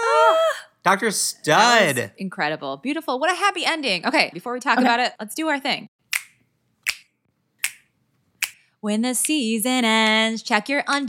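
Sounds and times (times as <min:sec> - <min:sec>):
speech: 0:00.8 - 0:05.9, 0:08.8 - 0:11.0
finger snaps: 0:06.1 - 0:09.4.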